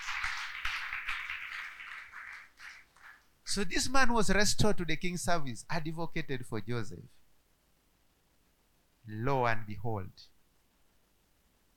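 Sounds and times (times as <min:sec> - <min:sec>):
audience clapping: 0:00.0 - 0:03.3
speech: 0:03.6 - 0:07.2, 0:09.1 - 0:10.3.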